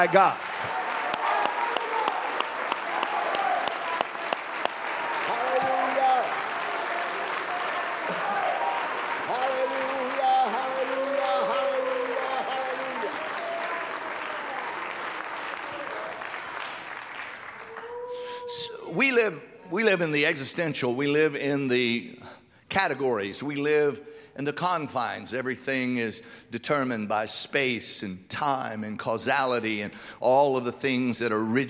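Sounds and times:
speech: 0.0s - 0.8s, 19.3s - 22.2s, 22.8s - 31.6s
audience clapping hands: 0.0s - 18.5s.

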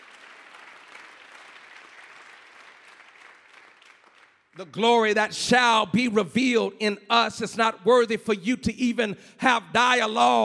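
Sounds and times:
audience clapping hands: 0.0s - 5.2s
speech: 4.6s - 10.4s.

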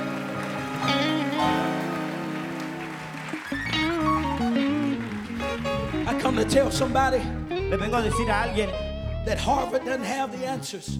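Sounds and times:
audience clapping hands: 0.0s - 8.7s
organ-like chords: 0.0s - 10.9s
speech: 6.4s - 10.9s.

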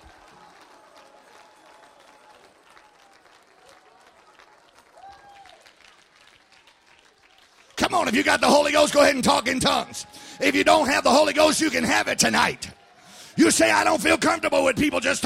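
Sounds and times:
audience clapping hands: 0.0s - 15.2s
rising shout: 5.0s - 5.6s
speech: 7.9s - 12.7s, 13.4s - 15.2s.

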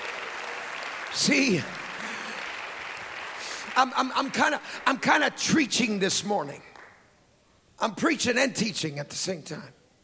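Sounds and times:
church congregation clapping during a sermon: 0.0s - 6.0s, 6.6s - 7.0s
speech: 1.2s - 1.8s, 3.8s - 6.7s, 7.8s - 9.8s.

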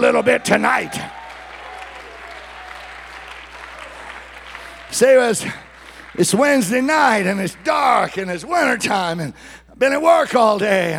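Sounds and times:
audience clapping hands: 0.0s - 9.2s
speech: 0.1s - 1.1s, 4.9s - 5.6s, 6.2s - 10.9s.

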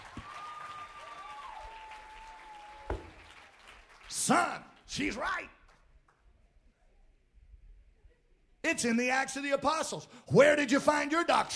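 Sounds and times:
polite audience applause: 0.0s - 4.3s
speech: 4.2s - 5.6s, 8.7s - 11.5s.

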